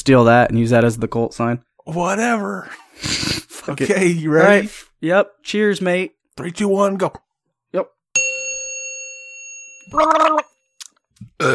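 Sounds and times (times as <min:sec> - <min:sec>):
speech: 0:00.0 - 0:08.0, 0:09.9 - 0:10.5, 0:11.2 - 0:11.5
person gargling a drink: 0:09.9 - 0:10.5, 0:11.2 - 0:11.5.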